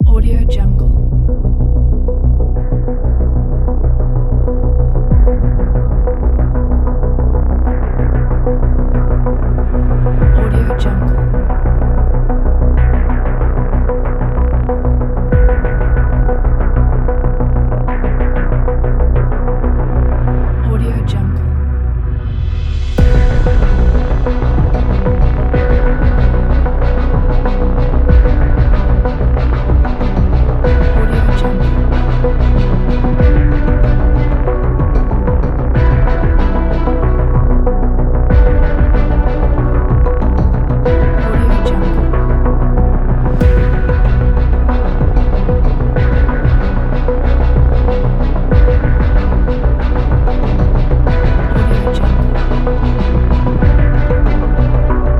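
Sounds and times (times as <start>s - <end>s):
tension music: 0.0s - 55.1s.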